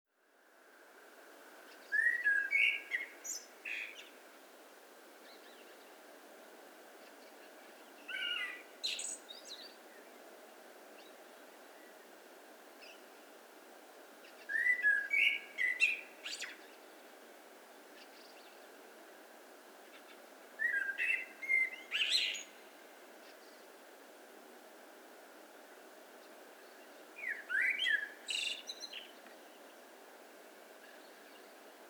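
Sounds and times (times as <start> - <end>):
background hiss: 0.2 - 31.8
Eurasian blackbird singing: 1.9 - 4.1, 8.1 - 9.8, 14.5 - 16.6, 20.6 - 22.6, 27.2 - 29.2.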